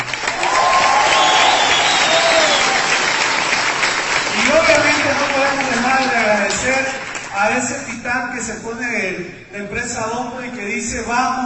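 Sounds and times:
audience applause: 0.0 - 7.3
speech: 6.6 - 11.4.

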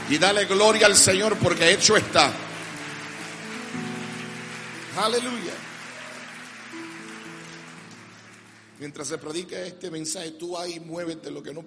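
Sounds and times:
audience clapping: 0.0 - 9.4
speech: 0.1 - 2.6, 5.0 - 5.7, 8.8 - 11.6.

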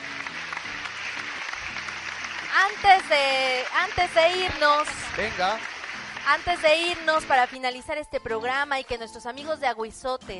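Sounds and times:
audience applause: 0.0 - 7.7
speech: 2.6 - 5.7, 6.3 - 10.3.

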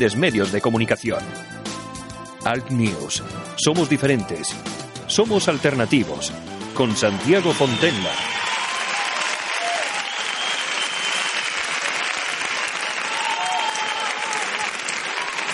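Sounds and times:
speech: 0.0 - 1.6, 2.4 - 8.4
audience applause: 6.8 - 15.5.

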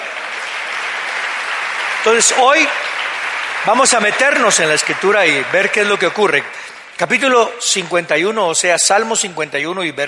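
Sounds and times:
audience applause: 0.0 - 7.4
speech: 2.0 - 3.0, 3.6 - 10.0.

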